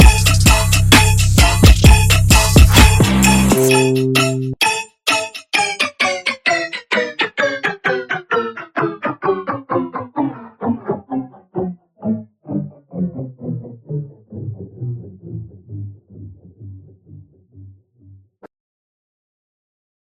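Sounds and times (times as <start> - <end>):
instrumental music: 0.0 - 15.1.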